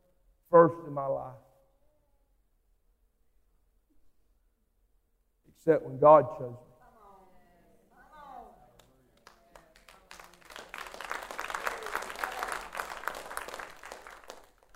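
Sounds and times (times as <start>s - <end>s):
speech: 0.6s - 1.5s, 5.6s - 6.7s
weak audience clapping: 8.6s - 14.7s.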